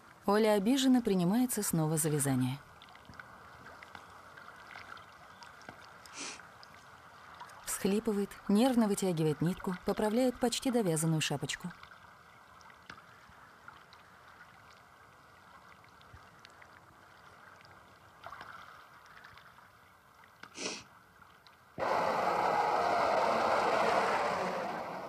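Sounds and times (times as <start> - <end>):
speech: 0.2 - 2.7, 7.8 - 11.8
car driving through city streets: 21.8 - 25.0.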